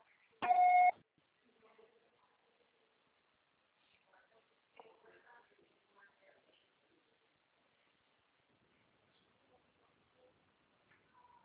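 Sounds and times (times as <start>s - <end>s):
voicemail beep: 0.4s - 1.0s.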